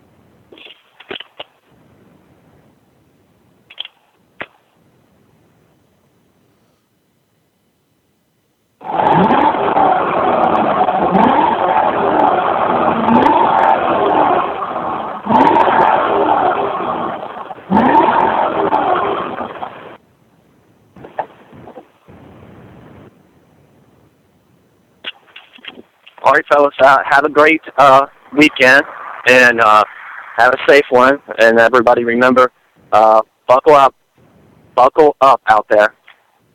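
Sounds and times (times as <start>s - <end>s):
bone-stock 2SS RS car engine revving: 8.8s - 20.0s
speech: 26.4s - 34.0s, 34.8s - 36.0s.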